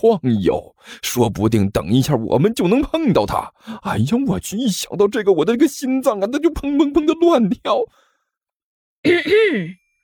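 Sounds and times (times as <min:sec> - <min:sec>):
speech: 0:00.0 - 0:08.0, 0:09.0 - 0:09.8
person coughing: 0:09.1 - 0:09.8.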